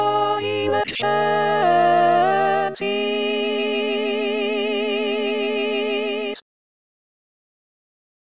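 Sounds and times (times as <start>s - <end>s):
alto voice singing a sanctus: 0.0s - 6.4s.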